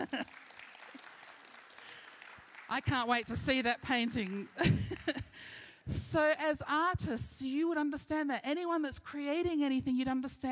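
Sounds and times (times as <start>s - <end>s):
laughter: 0.0s - 0.3s, 4.5s - 5.4s
speech: 0.0s - 0.4s, 2.7s - 5.2s, 5.9s - 10.5s
audience clapping: 0.0s - 5.4s.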